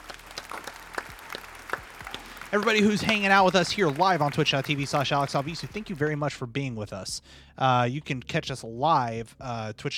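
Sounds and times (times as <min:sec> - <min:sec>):
clapping: 0:00.0 - 0:06.2
speech: 0:02.5 - 0:09.9.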